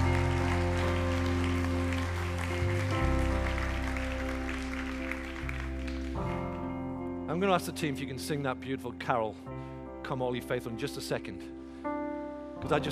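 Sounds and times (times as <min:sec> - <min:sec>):
audience applauding: 0:00.0 - 0:06.7
speech: 0:07.4 - 0:12.0, 0:12.6 - 0:12.9.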